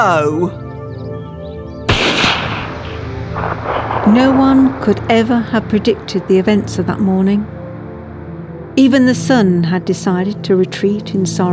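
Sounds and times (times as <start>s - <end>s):
speech: 0.0s - 0.6s, 4.1s - 7.6s, 8.8s - 11.5s
gunshot fired at a panther: 1.9s - 6.6s.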